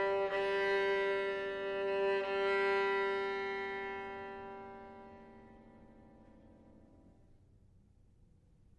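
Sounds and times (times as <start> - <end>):
violin playing in a live concert performance: 0.0 - 6.5.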